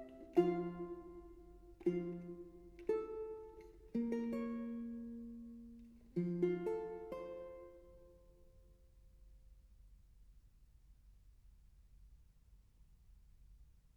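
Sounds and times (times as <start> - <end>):
four-course guitar fantasia: 0.0 - 8.6.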